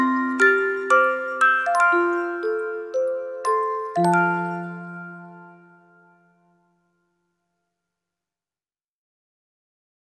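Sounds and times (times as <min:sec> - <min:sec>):
instrumental music: 0:00.0 - 0:07.0.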